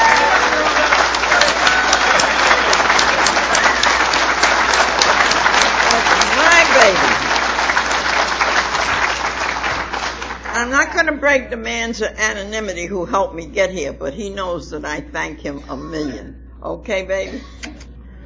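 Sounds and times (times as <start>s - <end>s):
round of applause: 0.0s - 10.6s
speech: 11.1s - 17.6s.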